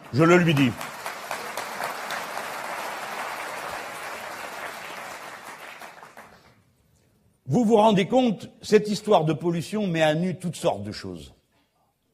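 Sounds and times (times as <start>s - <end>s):
audience applauding in a hall: 0.0s - 6.6s
speech: 0.1s - 0.9s, 7.5s - 11.4s.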